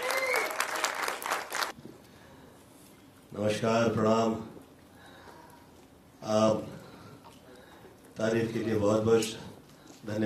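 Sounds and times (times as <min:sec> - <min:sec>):
loud audience applause: 0:00.0 - 0:01.8
speech: 0:03.3 - 0:04.5, 0:06.2 - 0:06.7, 0:08.2 - 0:10.2.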